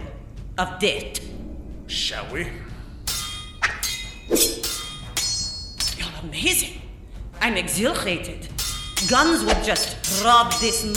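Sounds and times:
speech: 0.6 - 1.3, 1.9 - 2.7, 4.3 - 4.7, 6.2 - 6.8, 7.4 - 10.9
metal swords clashing in a duel: 3.0 - 6.1, 8.5 - 10.9.

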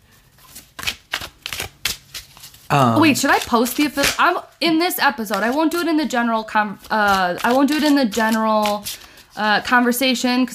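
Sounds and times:
playing cards being shuffled before a card is pulled: 0.4 - 4.2, 6.8 - 9.3
speech: 2.7 - 10.5.

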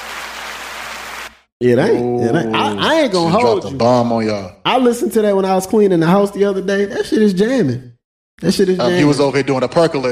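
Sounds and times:
applause sound effect: 0.0 - 1.5
speech: 1.6 - 10.1.

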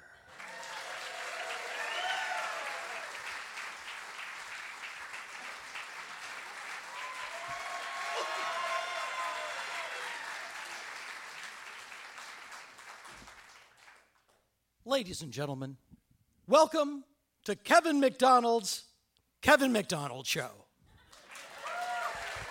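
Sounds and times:
audience applause: 0.0 - 14.1, 21.1 - 22.4
speech: 14.9 - 15.9, 16.5 - 20.6.

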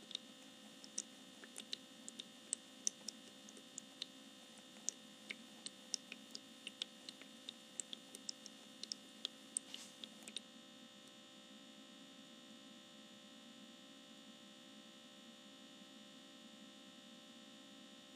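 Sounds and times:
essential oil diffuser humming: 0.0 - 11.0
faint constant tones: 0.0 - 18.1
sharp little ticks and clicks: 0.8 - 4.1, 4.8 - 9.4.

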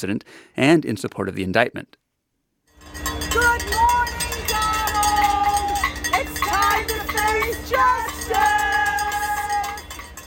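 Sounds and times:
speech: 0.0 - 2.0
hand bells ringing at a street protest: 2.7 - 10.2
crowd noise: 2.8 - 10.0.

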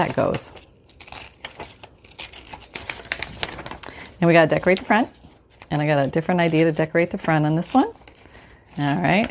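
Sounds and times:
speech: 0.0 - 0.7, 4.2 - 8.0, 8.8 - 9.2
paper tearing as a word is ripped out of a printed page: 0.0 - 3.9, 4.5 - 9.2.

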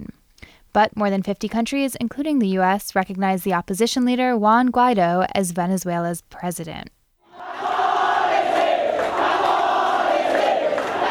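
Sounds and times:
speech: 0.7 - 7.0
protesters shouting in the streets of Indonesia after the vote count: 7.3 - 11.0.

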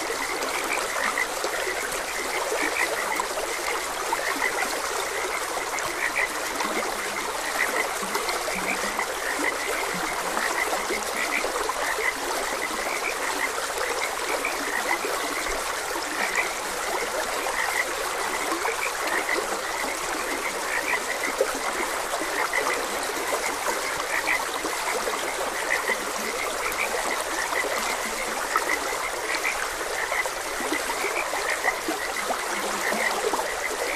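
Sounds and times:
frogs croaking in chorus: 0.0 - 33.9
stream water running: 0.0 - 33.9.

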